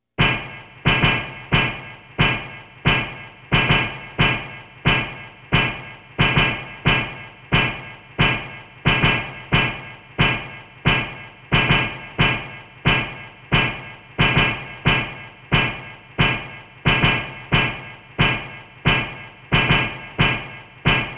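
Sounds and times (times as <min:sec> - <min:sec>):
ambient percussion: 0:00.2 - 0:21.1.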